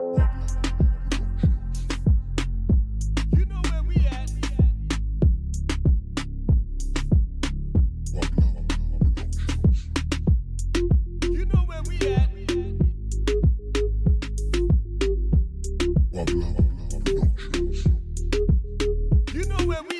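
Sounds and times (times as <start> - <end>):
Latin reggaeton music: 0.0 - 19.9.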